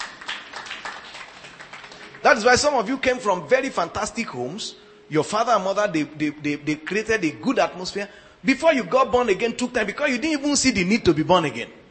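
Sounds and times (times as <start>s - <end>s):
audience clapping: 0.0s - 3.2s
speech: 2.2s - 11.8s.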